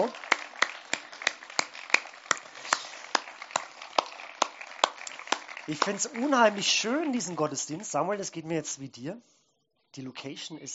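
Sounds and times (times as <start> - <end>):
audience clapping: 0.0 - 8.4
speech: 5.7 - 9.4, 10.0 - 10.7.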